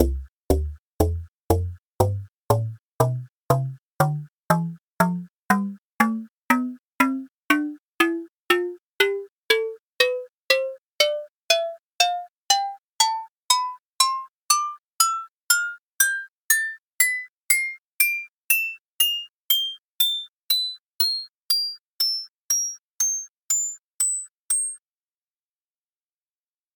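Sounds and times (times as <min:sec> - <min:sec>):
agogo bells playing a scale: 0:00.0 - 0:24.8.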